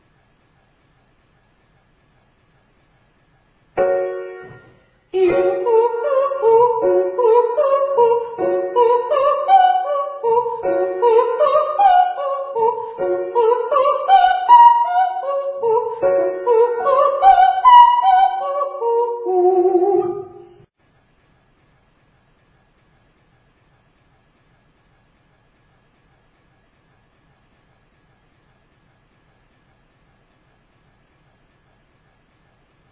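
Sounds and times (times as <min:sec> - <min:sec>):
person singing ascending triads and octaves to high D: 0:05.2 - 0:20.6.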